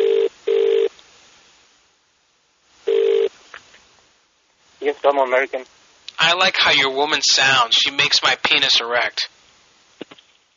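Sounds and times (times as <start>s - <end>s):
telephone line buzzing tone: 0.0s - 0.9s, 2.9s - 3.3s
speech: 5.0s - 9.4s.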